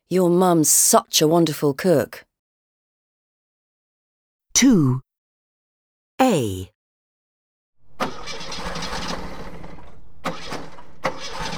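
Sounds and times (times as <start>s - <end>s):
speech: 0.1s - 2.3s, 4.6s - 5.0s, 6.2s - 6.7s
car engine cranking without starting: 7.8s - 11.5s.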